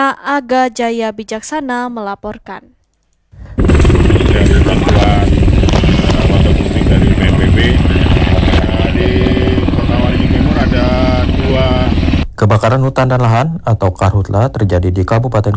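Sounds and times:
speech: 0.0 - 2.8, 3.8 - 5.5, 6.9 - 9.4, 10.6 - 15.5
waterbombing helicopter rotors chopping: 3.4 - 13.4.

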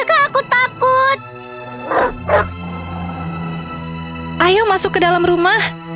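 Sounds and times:
dog barking: 0.0 - 3.9
speech: 4.5 - 5.8.

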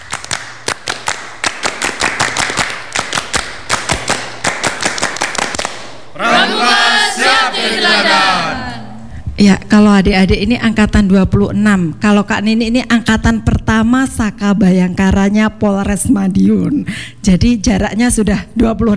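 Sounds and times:
group doing scout rhythmic clapping: 0.0 - 18.8
crowd cheering and shouting: 6.2 - 9.0
laughter: 6.2 - 18.7
speech: 9.4 - 18.9.

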